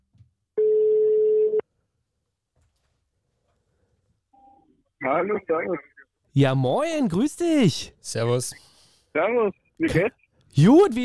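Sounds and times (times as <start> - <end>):
ringback tone on an outgoing phone call: 0.6 - 1.6
speech: 5.1 - 11.0.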